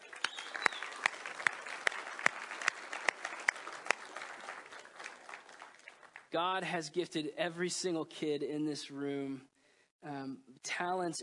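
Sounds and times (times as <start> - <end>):
hands clapping in even beat: 0.0 - 6.3
large group applauding: 0.0 - 6.4
speech: 6.3 - 11.2.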